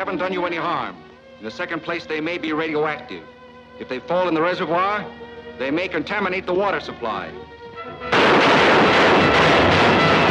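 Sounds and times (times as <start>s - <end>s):
speech: 0.0s - 9.0s
gunshots fired at a man: 8.0s - 10.2s.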